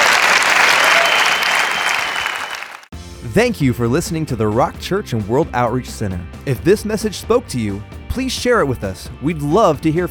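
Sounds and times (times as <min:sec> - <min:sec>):
audience applauding in praise: 0:00.0 - 0:02.9
speech: 0:03.4 - 0:10.0.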